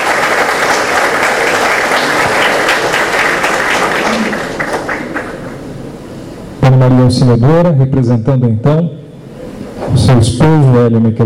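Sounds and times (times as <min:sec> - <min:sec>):
audience applause: 0:00.0 - 0:05.6
speech: 0:06.7 - 0:09.0, 0:10.0 - 0:11.2.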